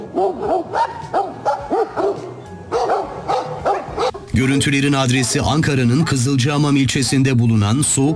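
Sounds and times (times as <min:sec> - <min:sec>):
stray dogs barking and yelping in a fight with bears in a national park: 0:00.0 - 0:04.3, 0:05.1 - 0:08.1
speech: 0:04.4 - 0:08.1.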